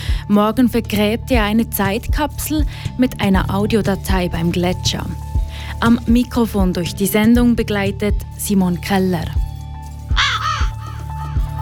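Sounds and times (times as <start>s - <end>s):
deep thumping beats: 0.0s - 11.6s
speech: 0.3s - 9.4s
raven cawing: 10.2s - 11.5s.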